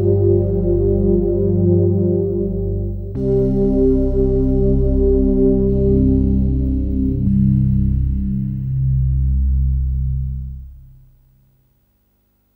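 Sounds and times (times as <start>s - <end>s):
stereo pad sound: 0.0s - 11.6s.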